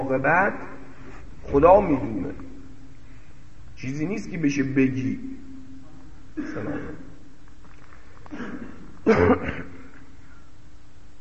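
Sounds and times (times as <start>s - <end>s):
speech: 0.1s - 0.8s, 1.4s - 2.5s, 3.8s - 5.5s, 6.4s - 7.0s, 8.3s - 9.8s
chesty cough from someone with a cold: 6.4s - 7.2s, 8.3s - 10.0s
throat clearing: 6.4s - 7.2s, 8.2s - 10.1s.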